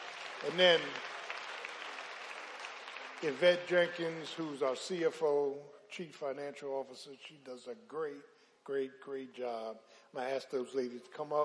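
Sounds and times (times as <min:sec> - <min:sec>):
audience hand clapping: 0:00.0 - 0:04.8
speech: 0:00.4 - 0:01.1, 0:03.2 - 0:11.4.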